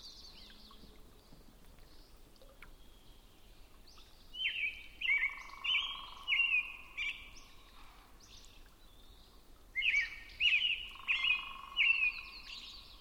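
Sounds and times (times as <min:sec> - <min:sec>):
robin singing warbled phrases: 0:04.3 - 0:07.4, 0:09.8 - 0:12.9.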